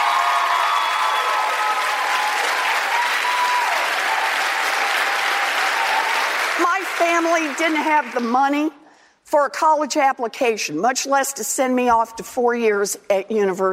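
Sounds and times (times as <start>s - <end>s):
audience applause at a town hall for public school teachers: 0.0s - 8.3s
speech: 7.0s - 13.7s.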